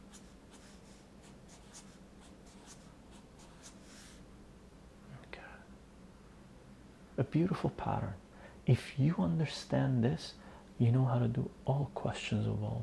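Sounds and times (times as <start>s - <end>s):
pen writing a math answer on paper: 0.0s - 3.8s
speech: 7.2s - 12.8s.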